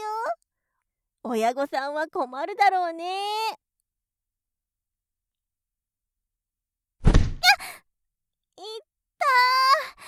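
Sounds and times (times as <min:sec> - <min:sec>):
speech: 0:01.2 - 0:03.6
dull thud of a person being shoved: 0:07.0 - 0:07.5.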